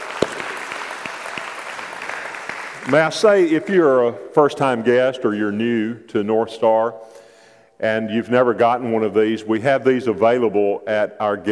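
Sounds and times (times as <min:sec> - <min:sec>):
audience clapping: 0:00.0 - 0:03.8
speech: 0:02.9 - 0:07.2, 0:07.8 - 0:11.5.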